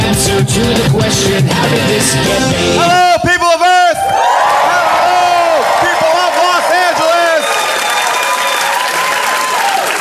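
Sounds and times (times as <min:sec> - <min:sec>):
speech: 0:00.2 - 0:03.0
live audience clapping at Largo in Los Angeles: 0:04.1 - 0:09.9.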